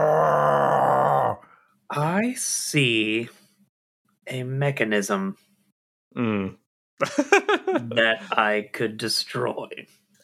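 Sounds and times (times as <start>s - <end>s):
voice imitating a monster's roar: 0.0s - 1.4s
speech: 1.9s - 3.4s, 4.3s - 5.5s, 6.1s - 10.2s
laughter: 7.0s - 8.4s.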